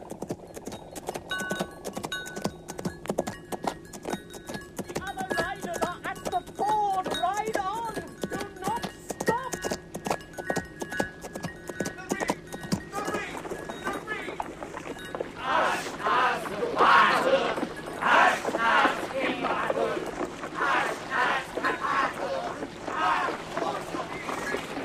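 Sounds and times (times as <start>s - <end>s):
horse Asfaloth galloping: 0.0s - 24.8s
voices shouting urgently: 15.3s - 24.8s.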